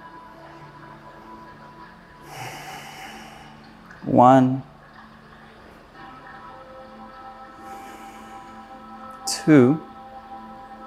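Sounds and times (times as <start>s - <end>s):
soft breathing during seated yoga twist Matsyendrasana: 2.2s - 4.0s, 7.5s - 9.2s
speech: 4.0s - 4.7s, 9.5s - 9.9s.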